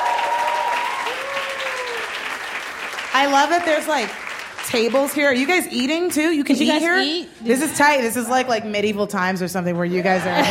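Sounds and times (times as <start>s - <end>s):
faint tonal whoop or whistle: 0.0s - 2.2s
audience clapping: 0.0s - 6.4s
speech: 3.2s - 10.4s.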